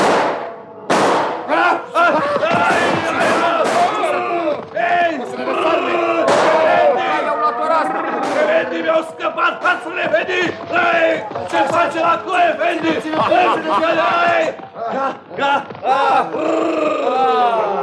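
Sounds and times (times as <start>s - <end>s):
volley of pistol shots: 0.0s - 1.5s, 2.6s - 4.2s
crowd of men shouting and yelling: 1.4s - 17.8s
laughter: 1.5s - 4.4s, 11.5s - 17.8s.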